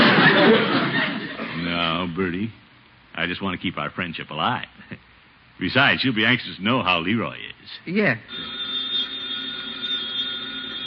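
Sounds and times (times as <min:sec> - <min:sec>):
laughter: 0:00.0 - 0:01.6
speech: 0:02.2 - 0:02.6, 0:03.2 - 0:08.6
telephone ringing: 0:08.3 - 0:10.8.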